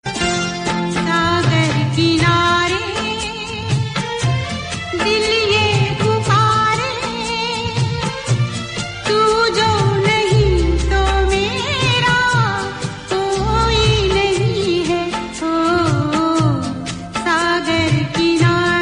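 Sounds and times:
instrumental background music: 0.0s - 18.8s.

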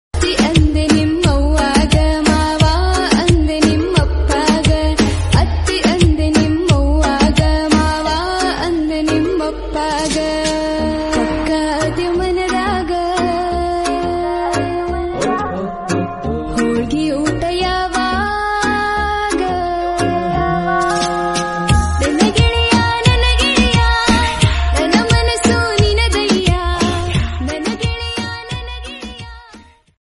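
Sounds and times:
trending Kannada songs: 0.2s - 29.3s.

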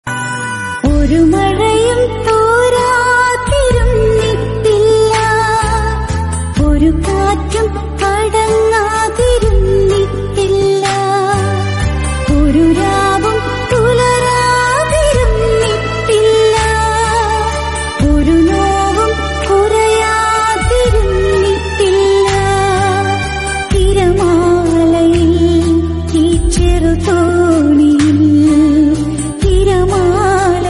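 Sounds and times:
Malayalam song: 0.0s - 30.6s.

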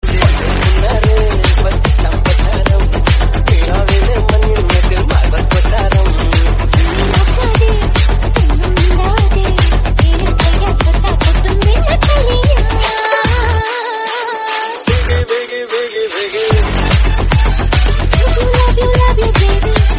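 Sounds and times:
remix song: 0.0s - 19.9s.

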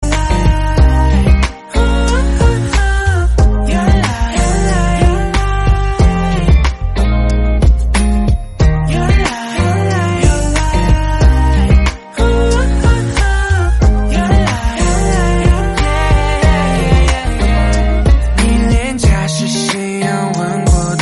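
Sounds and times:
Chinese song: 0.0s - 21.0s.

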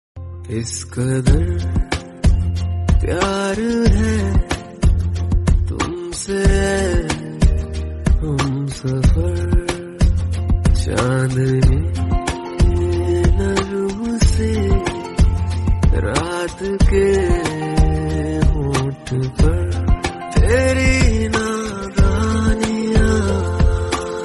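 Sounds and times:
romantic Hindi song: 0.2s - 24.2s.

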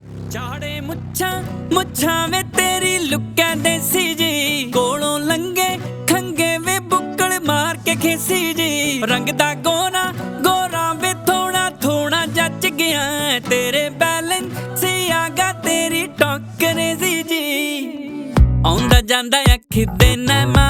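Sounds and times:
guitar: 0.0s - 20.6s.

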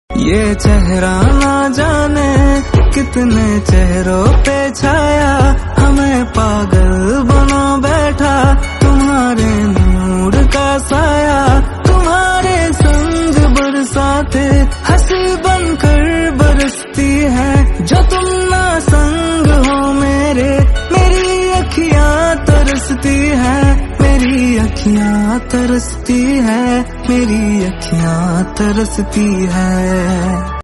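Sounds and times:
instrumental music: 0.1s - 30.6s.

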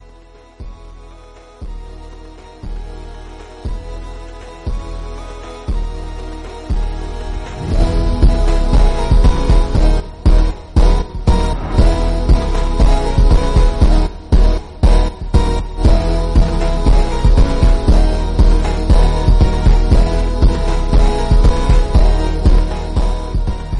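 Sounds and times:
crystals instrumental music: 0.0s - 23.7s.

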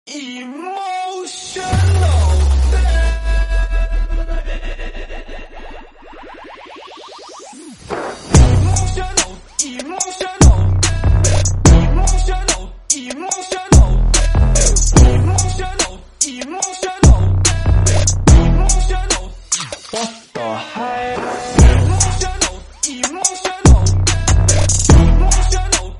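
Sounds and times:
trap remix: 0.6s - 25.9s.

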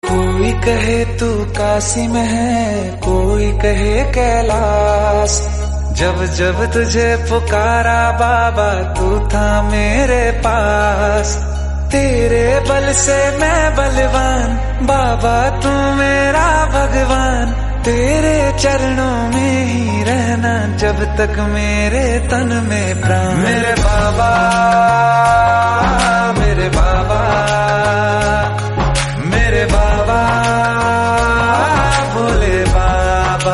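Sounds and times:
Hindi devotional music: 0.0s - 33.5s.

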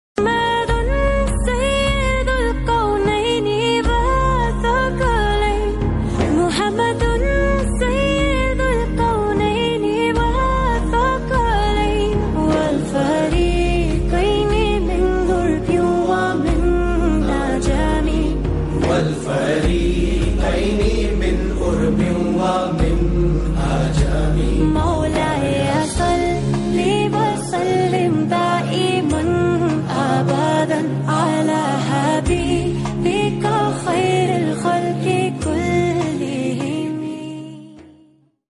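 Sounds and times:
islamic song: 0.2s - 38.2s.

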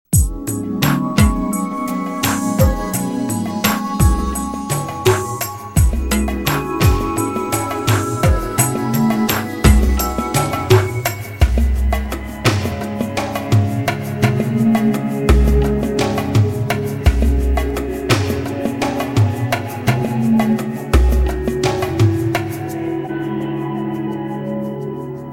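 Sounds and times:
jazz music: 0.1s - 25.3s.

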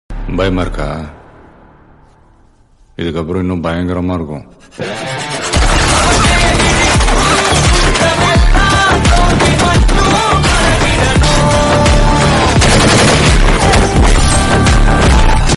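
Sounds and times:
child death background music: 0.1s - 15.5s.

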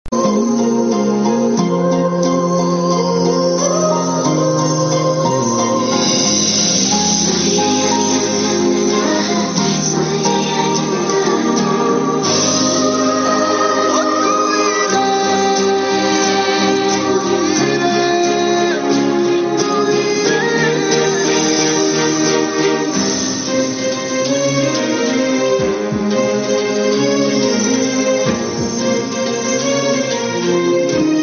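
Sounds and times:
background music: 0.0s - 31.2s.

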